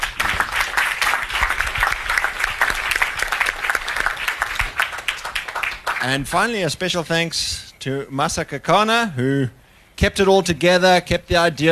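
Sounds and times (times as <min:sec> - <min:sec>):
audience applause: 0:00.0 - 0:06.2
speech: 0:06.0 - 0:11.7.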